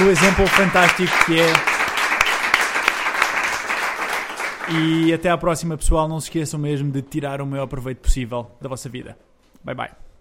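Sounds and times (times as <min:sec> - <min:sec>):
audience applause at the close of a live talk: 0:00.0 - 0:05.2
speech: 0:00.1 - 0:01.7, 0:04.7 - 0:10.0.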